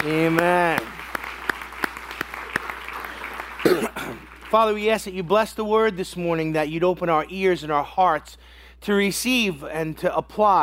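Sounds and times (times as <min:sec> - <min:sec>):
speech: 0:00.0 - 0:00.9, 0:04.5 - 0:10.6
audience applause: 0:00.0 - 0:05.0.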